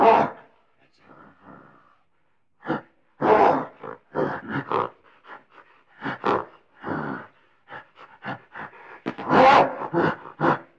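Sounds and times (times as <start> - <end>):
gorilla screaming and roaring: 0.0 - 0.4, 2.7 - 4.3, 9.2 - 10.6.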